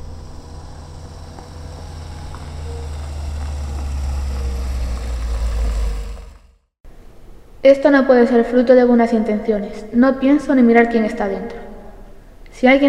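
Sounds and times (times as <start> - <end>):
car approaching and idling alongside a woman walking: 0.0 - 6.8
speech: 7.6 - 11.6, 12.6 - 12.8.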